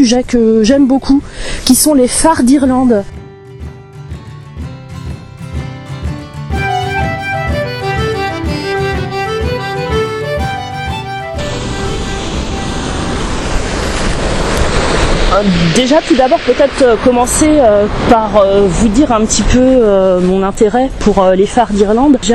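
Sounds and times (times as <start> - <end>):
speech: 0.0 - 3.2, 15.4 - 22.3
music: 2.4 - 13.4
sea waves on the Irish coast: 4.2 - 21.0.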